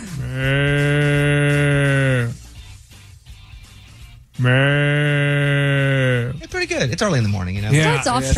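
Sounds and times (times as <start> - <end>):
voice imitating a water buffalo mooing: 0.0 - 2.4, 4.4 - 6.4
speech: 0.3 - 0.6, 6.9 - 8.3.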